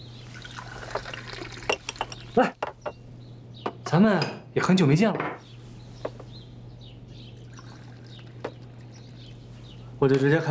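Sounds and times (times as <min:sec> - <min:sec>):
water pouring into a cup: 0:00.3 - 0:02.0, 0:07.4 - 0:09.4
speech: 0:02.4 - 0:02.6, 0:04.0 - 0:05.3, 0:10.0 - 0:10.5.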